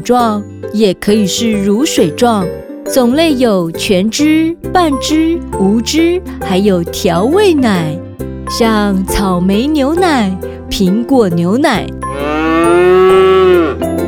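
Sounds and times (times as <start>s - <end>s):
speech: 0.0s - 12.3s
cow mooing: 12.0s - 13.9s.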